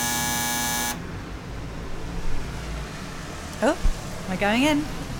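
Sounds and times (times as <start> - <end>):
door bell buzzer being pressed: 0.0 - 1.0
speech: 3.6 - 5.0.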